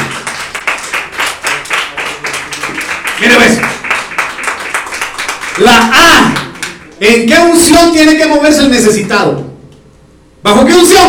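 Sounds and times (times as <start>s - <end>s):
crowd clapping hands: 0.0s - 7.2s
speech: 3.2s - 3.7s, 7.0s - 9.5s, 10.4s - 11.0s.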